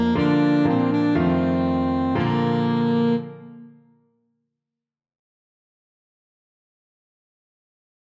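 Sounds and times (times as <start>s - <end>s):
saxophone: 0.0s - 3.9s.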